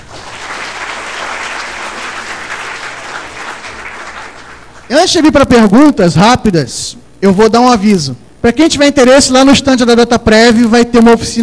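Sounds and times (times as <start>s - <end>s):
audience applause: 0.0s - 4.9s
speech: 4.9s - 11.4s.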